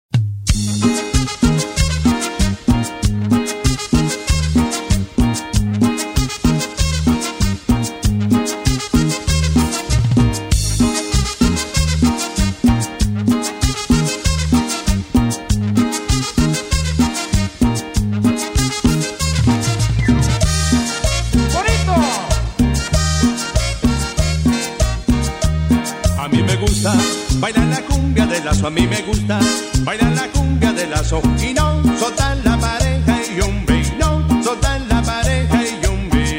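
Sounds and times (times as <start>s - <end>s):
cumbia music: 0.2s - 36.3s.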